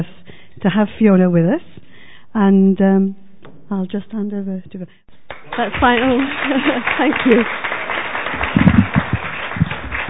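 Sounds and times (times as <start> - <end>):
speech: 0.0 - 7.7
audience applause greeting a guest speaker: 5.3 - 10.0.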